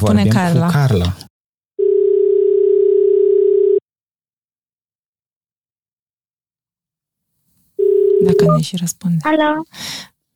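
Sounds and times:
speech: 0.0s - 1.3s, 8.2s - 10.1s
telephone tone while placing a call: 1.8s - 3.8s, 7.8s - 8.7s.

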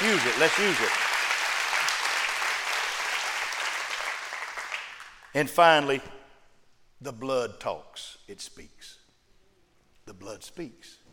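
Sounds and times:
audience clapping hands: 0.0s - 5.4s
speech: 0.2s - 1.1s, 5.3s - 6.2s, 7.0s - 9.0s, 10.1s - 11.0s.

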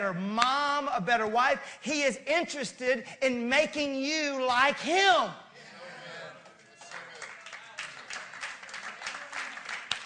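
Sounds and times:
speech: 0.0s - 5.4s
murmur of voices: 5.5s - 7.9s
crowd clapping: 6.4s - 10.0s.

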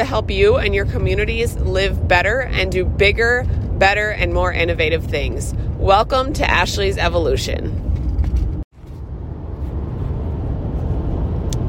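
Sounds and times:
speech: 0.0s - 7.8s
car driving on the road in the early morning: 0.0s - 11.6s.

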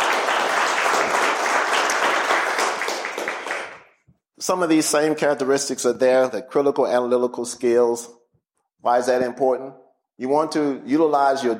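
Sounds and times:
audience applause: 0.0s - 3.9s
speech: 4.5s - 8.2s, 8.8s - 11.5s.

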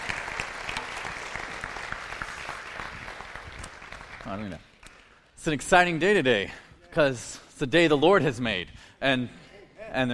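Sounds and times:
audience applause: 0.0s - 4.6s
speech: 4.3s - 4.7s, 5.4s - 10.1s.

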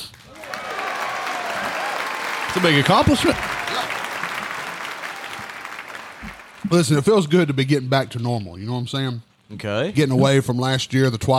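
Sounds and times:
round of applause: 0.0s - 7.4s
speech: 2.6s - 3.5s, 6.7s - 11.3s.

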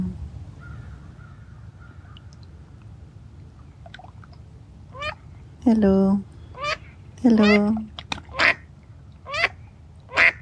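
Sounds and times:
speech: 5.6s - 6.3s, 7.2s - 7.9s
duck quacking: 6.6s - 7.7s, 8.3s - 8.6s, 9.3s - 10.4s.

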